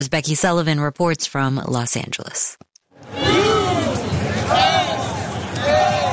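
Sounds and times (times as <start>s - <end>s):
speech: 0.0s - 3.2s
rowdy stadium crowd roaring at World Cup game: 3.0s - 6.1s.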